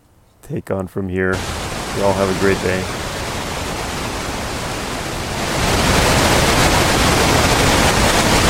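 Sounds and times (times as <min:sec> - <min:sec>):
speech: 0:00.5 - 0:03.0
waterfall rushing water: 0:01.3 - 0:08.4.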